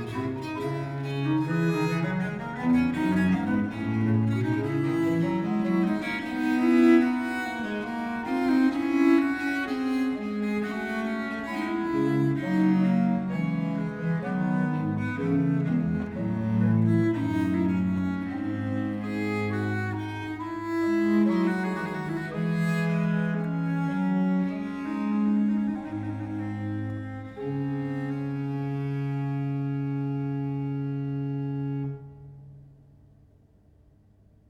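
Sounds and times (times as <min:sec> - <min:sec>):
early music duo for two bass viols in D major: 0:00.0 - 0:32.7.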